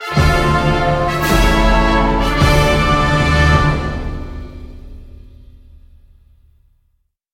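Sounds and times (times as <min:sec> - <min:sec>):
big orchestral losing fanfare: 0:00.0 - 0:05.1.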